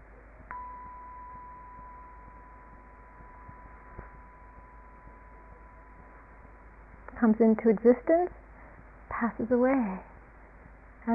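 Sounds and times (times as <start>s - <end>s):
bell ringing: 0.5s - 7.0s
speech: 7.2s - 8.4s, 9.2s - 10.1s.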